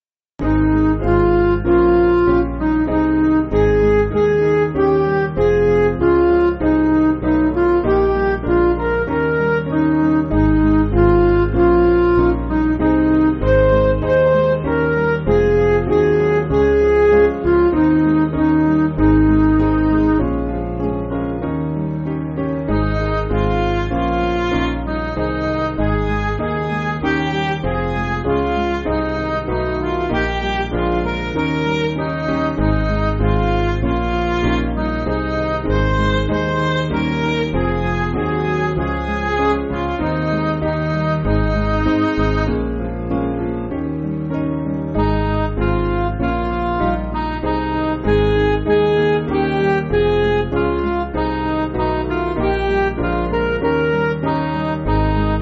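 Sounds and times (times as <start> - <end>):
backing music for churches: 0.4 - 55.3.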